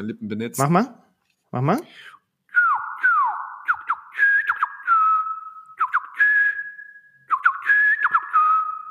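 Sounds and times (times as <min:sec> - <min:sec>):
speech: 0:00.0 - 0:02.1
person whistling a bird call imitation: 0:02.6 - 0:08.8.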